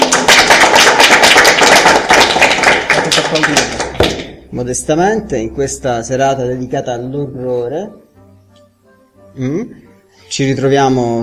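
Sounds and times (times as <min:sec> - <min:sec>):
applause: 0:00.0 - 0:04.4
speech: 0:03.4 - 0:08.0, 0:09.4 - 0:11.2.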